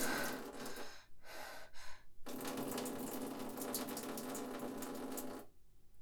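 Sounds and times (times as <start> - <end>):
person urinating standing up in a toilet: 0.0 - 1.0, 2.3 - 5.5.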